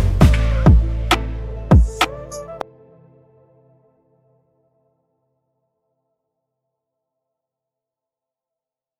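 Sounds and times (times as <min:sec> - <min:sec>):
afrobeat instrumental type beat: 0:00.0 - 0:02.8.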